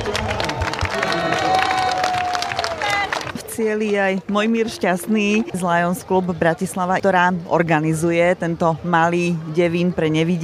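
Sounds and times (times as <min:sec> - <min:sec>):
spectators shouting for child runners: 0:00.0 - 0:03.2
spectators clapping for child runners at a race finish: 0:00.0 - 0:04.6
crowd noise: 0:00.0 - 0:10.4
speech: 0:03.6 - 0:10.4.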